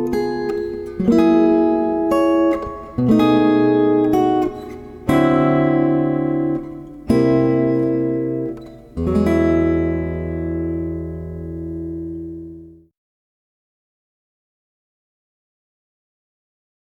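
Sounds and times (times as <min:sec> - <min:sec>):
acoustic blues progressions: 0:00.0 - 0:12.8.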